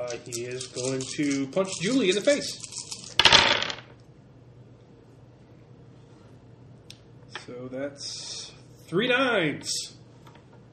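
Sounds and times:
dice being rolled on a table: 0.0s - 4.0s
speech: 0.1s - 2.9s, 7.7s - 10.0s.

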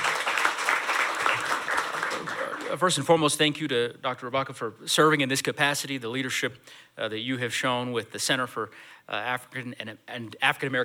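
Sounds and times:
audience round of applause: 0.0s - 2.9s
speech: 2.7s - 10.8s.

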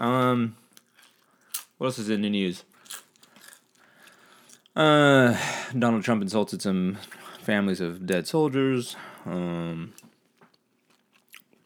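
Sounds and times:
speech: 0.0s - 0.6s, 1.8s - 3.0s, 4.8s - 10.1s
person crunching chips: 0.6s - 4.8s, 9.9s - 11.6s.

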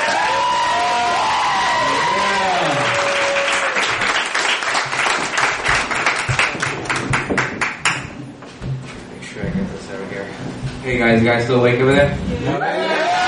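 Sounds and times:
live audience applauding and cheering at a show: 0.0s - 8.0s, 12.6s - 13.2s
speech: 10.9s - 12.7s.

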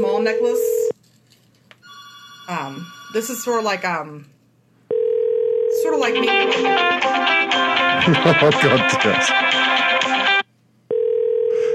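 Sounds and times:
cell phone ringing: 0.0s - 0.9s, 1.8s - 3.6s, 4.9s - 6.8s, 10.9s - 11.7s
speech: 0.2s - 0.8s, 2.5s - 4.4s, 5.8s - 9.7s
laughter: 7.9s - 9.3s.

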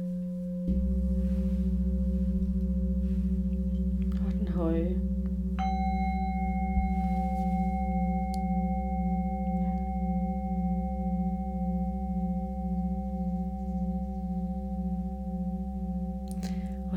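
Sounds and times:
singing bowls ringing, middle then deep: 0.0s - 16.9s.

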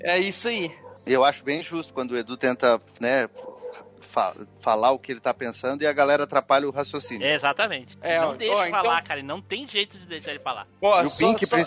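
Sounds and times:
speech: 0.0s - 11.6s
dog barking in the background: 0.6s - 1.2s, 3.3s - 4.0s, 7.0s - 7.7s.

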